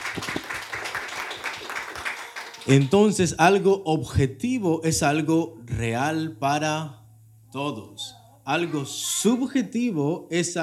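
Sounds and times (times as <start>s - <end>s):
audience clapping hands: 0.0s - 3.3s
speech: 2.6s - 10.6s.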